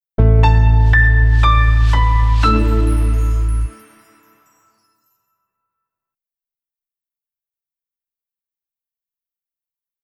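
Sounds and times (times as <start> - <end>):
jingle: 1.0 - 5.5.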